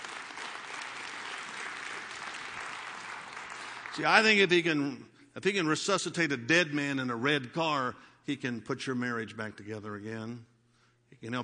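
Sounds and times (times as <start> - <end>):
audience applause: 0.0 - 4.5
speech: 4.0 - 10.5, 11.2 - 11.4.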